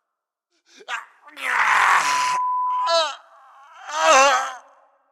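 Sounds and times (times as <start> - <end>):
lo-fi horror tortured soul wailing: 1.1 - 4.8.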